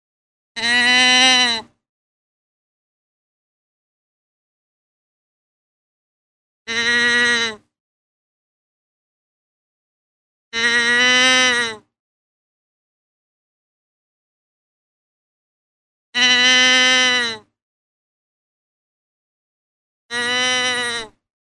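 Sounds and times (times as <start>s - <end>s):
deer bleating: 0.6s - 1.7s, 6.7s - 7.6s, 10.6s - 11.8s, 16.2s - 17.4s, 20.1s - 21.2s.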